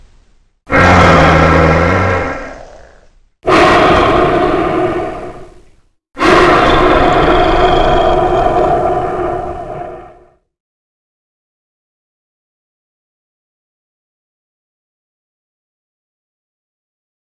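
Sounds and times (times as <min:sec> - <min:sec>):
dinosaur roars: 0:00.7 - 0:10.4.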